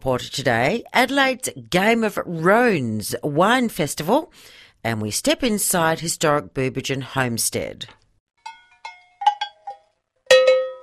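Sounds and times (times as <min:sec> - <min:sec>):
speech: 0:00.0 - 0:08.0
metal livestock bells clanking: 0:08.4 - 0:10.8.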